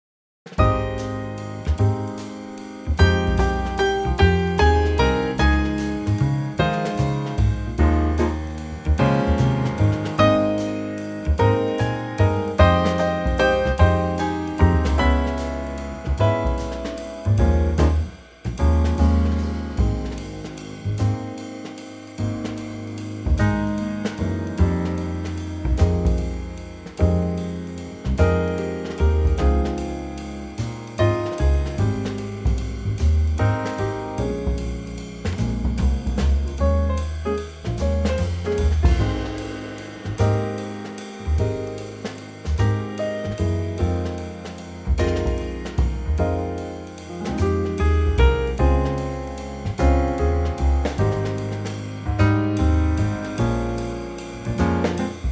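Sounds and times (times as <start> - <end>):
musical trio: 0.5 - 55.3.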